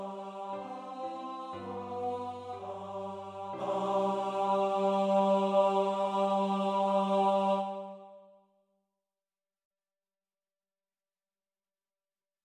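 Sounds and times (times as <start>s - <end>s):
tenor singing: 0.0s - 8.2s.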